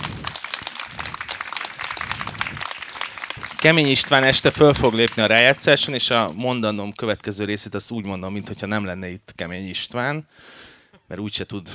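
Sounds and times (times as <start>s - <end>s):
audience applause: 0.0s - 6.4s
speech: 3.6s - 11.7s.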